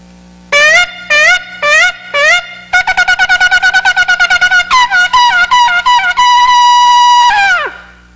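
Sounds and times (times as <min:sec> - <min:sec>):
shofar blasts: 0:00.6 - 0:08.1.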